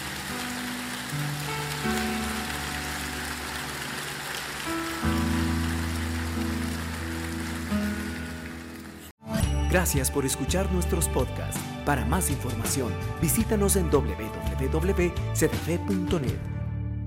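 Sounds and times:
audience applause: 0.0s - 9.1s
speech: 9.7s - 16.5s.

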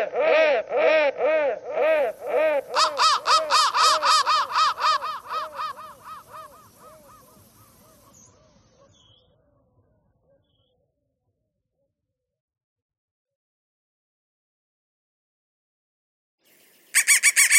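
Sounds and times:
crow giving fast harsh caws: 0.0s - 8.2s, 17.0s - 17.5s.

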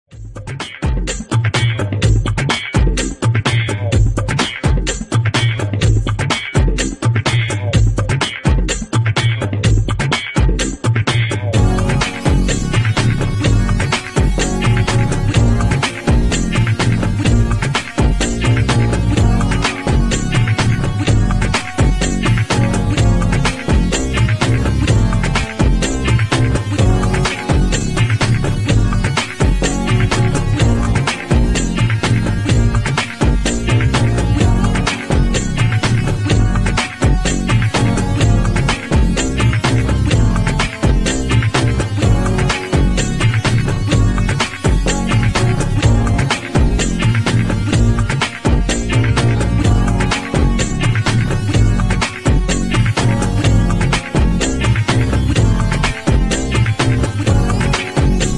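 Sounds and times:
night groove music: 0.1s - 58.3s.

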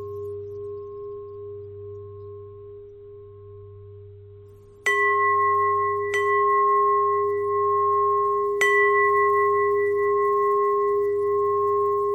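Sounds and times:
long bell ringing: 4.9s - 12.0s.

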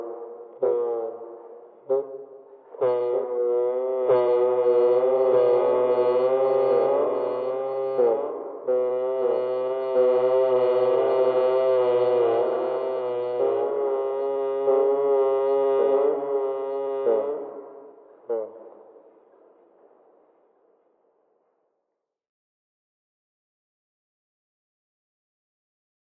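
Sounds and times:
bagpipe: 2.8s - 17.4s.

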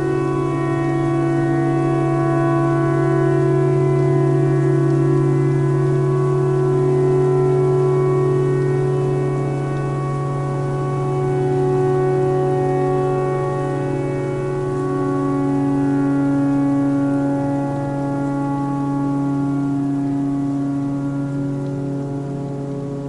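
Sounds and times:
tornado siren: 0.0s - 23.0s.

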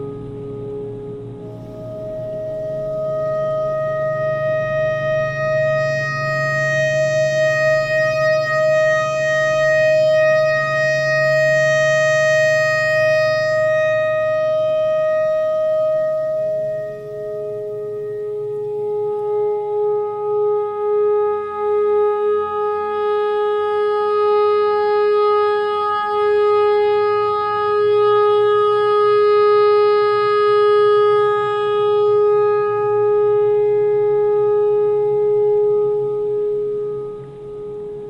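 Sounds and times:
tornado siren: 1.3s - 37.6s
pentatonic clarinet notes: 1.4s - 38.0s.

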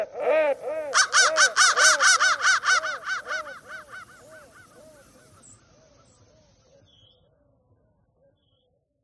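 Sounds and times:
crow cawing: 0.2s - 5.4s.

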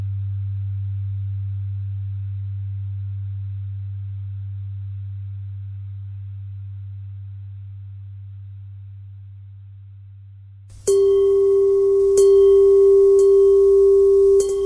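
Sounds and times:
bells ringing: 10.8s - 14.6s.

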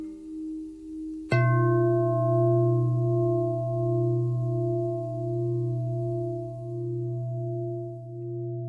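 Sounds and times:
long pentatonic bell tones: 1.3s - 8.6s.

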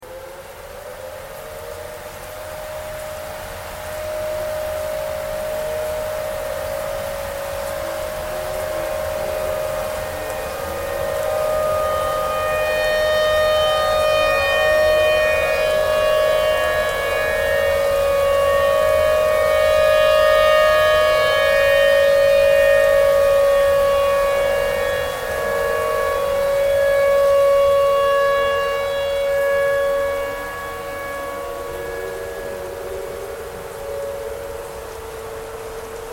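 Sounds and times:
tornado siren: 0.0s - 36.1s.

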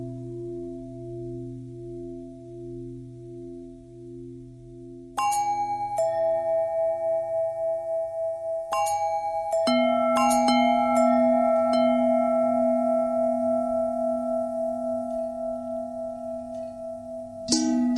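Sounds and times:
long pentatonic bell tones: 5.2s - 17.9s.

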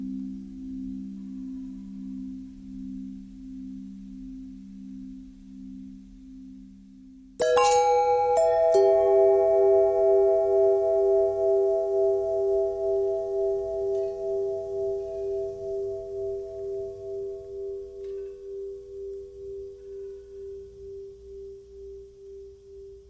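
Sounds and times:
long pentatonic bell tones: 7.4s - 21.6s.

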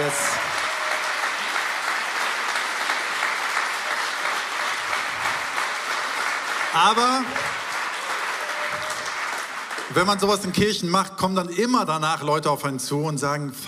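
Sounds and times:
big round of applause from a crowd: 0.0s - 10.7s
speech: 6.8s - 7.6s, 10.0s - 13.6s.

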